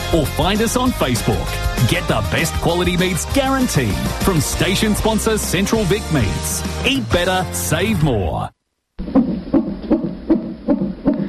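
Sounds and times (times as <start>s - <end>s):
speech: 0.1s - 9.2s
fetal heartbeat in the womb on a Doppler monitor: 9.0s - 11.2s.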